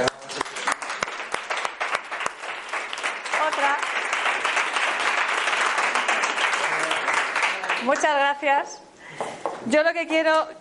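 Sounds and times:
audience applause: 0.0s - 8.2s
speech: 7.9s - 10.6s.

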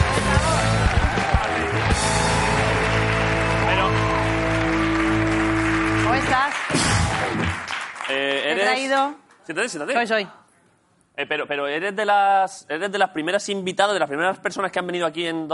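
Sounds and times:
audience applause: 0.0s - 8.8s
speech: 8.8s - 10.4s, 11.2s - 15.5s.

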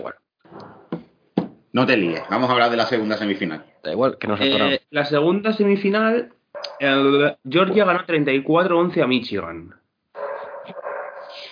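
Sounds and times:
speech: 0.0s - 0.2s, 1.8s - 9.8s
dog barking: 6.6s - 7.0s, 10.2s - 11.5s.

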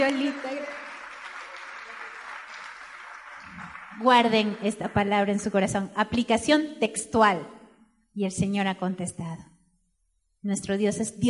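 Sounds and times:
speech: 0.0s - 0.9s, 4.0s - 7.6s, 8.2s - 9.5s, 10.4s - 11.2s
audience applause: 0.0s - 4.7s.

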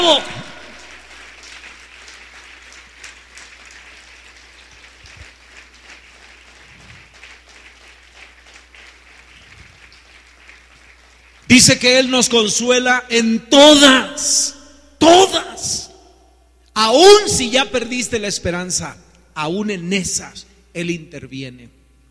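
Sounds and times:
audience clapping: 0.0s - 12.1s
speech: 11.5s - 15.8s, 16.8s - 21.8s.

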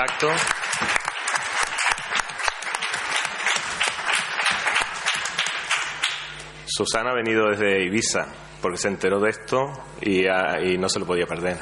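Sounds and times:
speech: 0.0s - 0.6s, 6.8s - 11.5s
audience applause: 0.0s - 6.4s.

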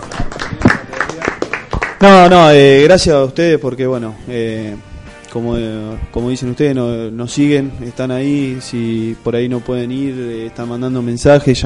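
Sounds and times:
scattered hand claps from a small group: 0.0s - 2.1s
speech: 2.0s - 11.6s.

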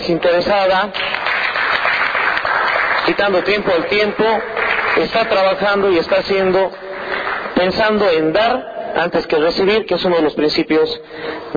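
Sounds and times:
speech: 0.0s - 1.2s, 3.1s - 6.9s, 7.6s - 11.5s
audience applause: 1.0s - 7.6s.

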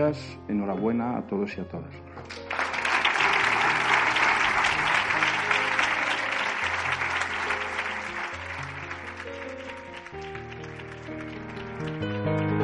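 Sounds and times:
speech: 0.0s - 2.4s
audience applause: 2.3s - 12.2s.

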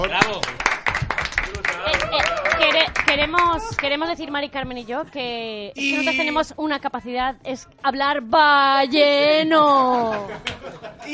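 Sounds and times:
small group applause: 0.0s - 4.3s
voices cheering: 1.6s - 3.0s
laughter: 1.8s - 3.0s, 9.8s - 11.1s
speech: 3.2s - 11.1s.

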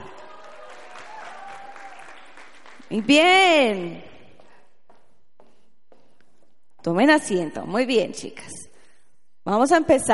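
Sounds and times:
audience applause: 0.0s - 3.0s
speech: 2.9s - 4.1s, 6.8s - 8.6s, 9.5s - 10.1s.

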